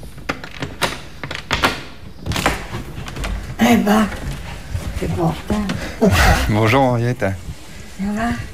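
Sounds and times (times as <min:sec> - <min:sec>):
door opening as visitor enters: 0:00.0 - 0:06.0
speech: 0:03.7 - 0:04.2, 0:05.0 - 0:07.4, 0:08.0 - 0:08.5.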